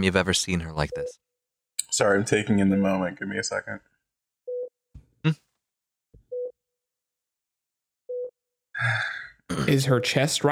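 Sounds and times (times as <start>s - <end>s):
speech: 0.0s - 1.3s, 1.9s - 3.9s, 5.2s - 5.4s, 8.8s - 10.5s
heart rate monitor beeping: 4.5s - 4.8s, 6.3s - 6.6s, 8.1s - 8.4s, 9.9s - 10.3s.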